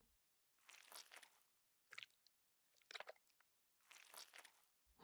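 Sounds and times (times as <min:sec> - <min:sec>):
slime onahole squelching: 0:00.6 - 0:04.7
ear licking: 0:00.7 - 0:02.2.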